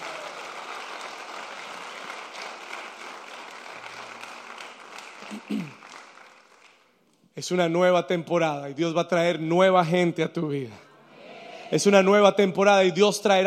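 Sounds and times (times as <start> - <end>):
audience applauding: 0.0 - 7.0
speech: 5.3 - 5.8, 7.4 - 10.8, 11.7 - 13.4.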